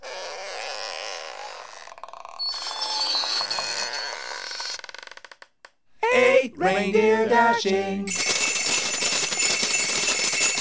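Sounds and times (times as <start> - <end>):
doors creaking: 2.3 - 5.8
speech: 6.2 - 8.3
stuttering rattle: 8.1 - 10.5.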